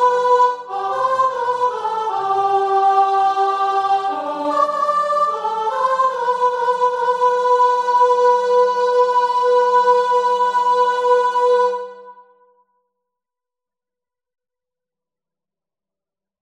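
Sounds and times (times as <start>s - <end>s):
tune: 0.0s - 12.1s.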